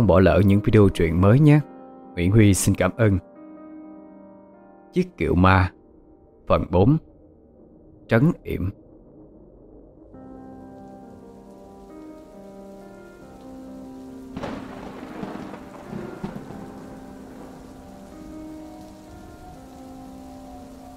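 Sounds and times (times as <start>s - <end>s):
speech: 0.0s - 3.3s, 4.9s - 5.8s, 6.5s - 7.1s, 8.1s - 8.8s
heavy rain downpour: 10.4s - 20.9s.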